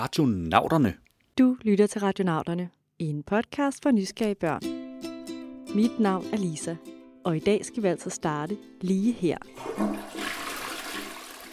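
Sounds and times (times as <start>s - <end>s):
speech: 0.0s - 4.8s, 5.7s - 10.4s
toilet flushing: 9.5s - 11.5s.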